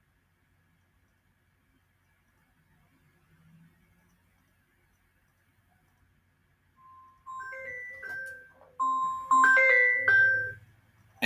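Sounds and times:
mobile phone ringing: 0:06.8 - 0:10.6.

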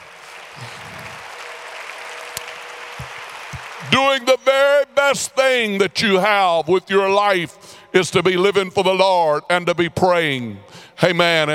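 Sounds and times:
crowd clapping: 0:00.0 - 0:05.0
speech: 0:03.9 - 0:11.5.

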